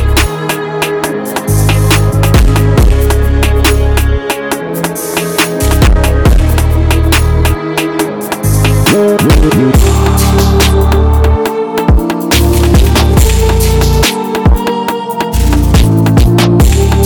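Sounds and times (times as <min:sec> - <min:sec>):
drill drum kit: 0:00.0 - 0:17.0.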